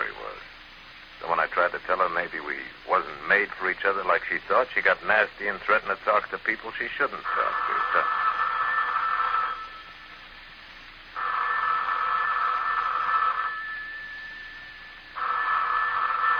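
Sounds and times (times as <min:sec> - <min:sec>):
speech: 0:01.5 - 0:08.2
telephone ringing: 0:07.2 - 0:10.2, 0:11.2 - 0:16.3.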